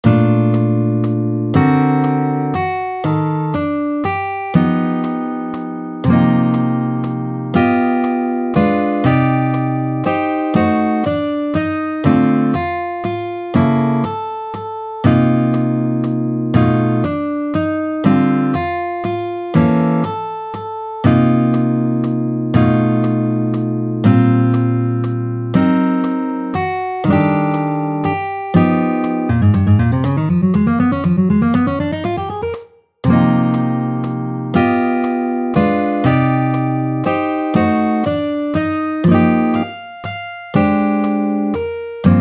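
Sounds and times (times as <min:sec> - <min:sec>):
guitar solo: 0:00.0 - 0:42.1.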